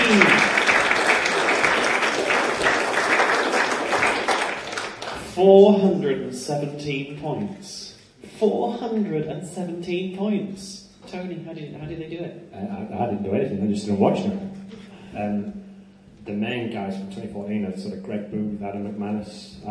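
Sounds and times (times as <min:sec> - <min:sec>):
round of applause: 0:00.0 - 0:05.4
speech: 0:05.4 - 0:14.4, 0:15.1 - 0:15.6, 0:16.2 - 0:19.6.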